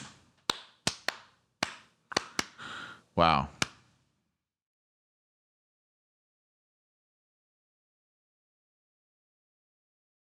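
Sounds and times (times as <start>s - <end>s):
slow hand claps from audience: 0.0s - 2.7s, 3.6s - 3.8s
speech: 3.2s - 3.6s.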